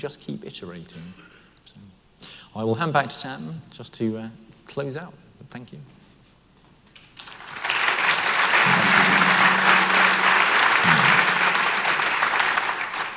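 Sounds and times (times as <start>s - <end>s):
speech: 0.0s - 1.9s, 2.5s - 6.0s
audience applause: 7.2s - 13.1s.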